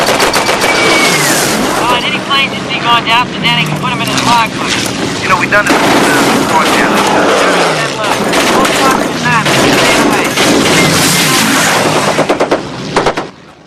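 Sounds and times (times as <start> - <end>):
bomber ball-turret machine gun firing: 0.0 - 1.5, 5.7 - 13.3
bomber engine roar: 0.0 - 13.6
speech: 2.9 - 9.0.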